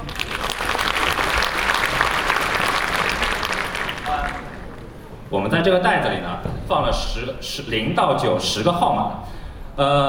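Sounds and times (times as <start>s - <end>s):
audience applause: 0.0s - 5.2s
speech: 5.3s - 10.0s.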